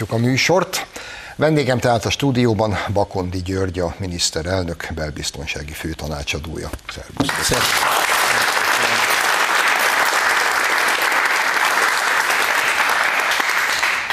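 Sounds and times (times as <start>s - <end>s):
speech: 0.0s - 8.0s
enthusiastic audience applause: 7.2s - 14.1s.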